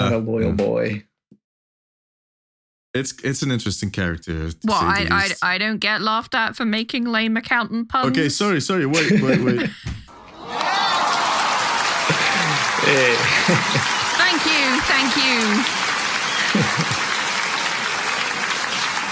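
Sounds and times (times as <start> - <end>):
speech: 0.1 - 1.1, 2.9 - 10.8, 12.8 - 15.8
laughter: 4.7 - 5.4, 8.0 - 15.6, 16.2 - 17.6
long applause, standing ovation: 10.1 - 19.1.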